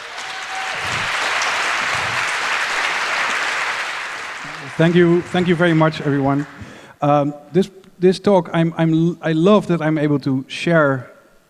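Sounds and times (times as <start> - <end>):
audience applause: 0.0 - 6.9
speech: 4.8 - 11.1.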